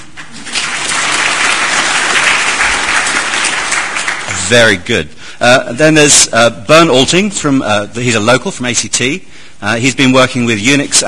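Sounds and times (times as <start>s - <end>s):
audience applause: 0.3s - 4.6s
speech: 4.5s - 11.0s.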